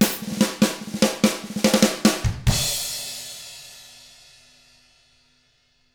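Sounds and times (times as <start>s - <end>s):
rock drums in 6/8: 0.0s - 4.0s.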